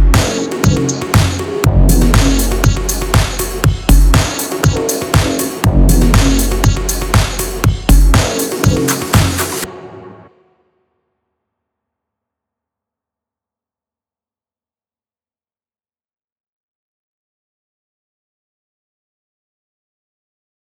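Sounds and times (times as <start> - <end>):
edm music: 0.0 - 10.3.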